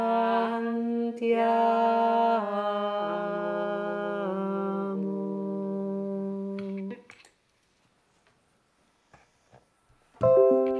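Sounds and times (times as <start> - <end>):
two-part singing: 0.0 - 7.0.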